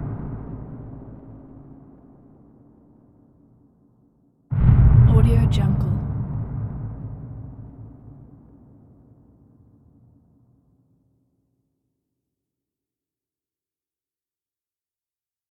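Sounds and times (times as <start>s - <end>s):
explosions: 0.0s - 2.8s, 4.5s - 9.3s.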